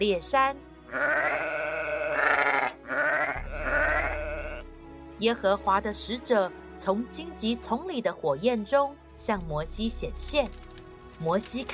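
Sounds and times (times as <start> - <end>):
speech: 0.0 - 1.8, 5.2 - 11.7
flock of sheep bleating: 0.9 - 4.7.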